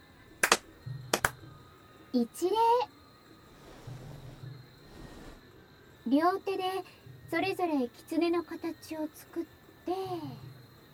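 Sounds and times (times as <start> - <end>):
two ritual hand claps at shrine: 0.4 - 1.4
speech: 2.1 - 3.0, 6.1 - 10.5.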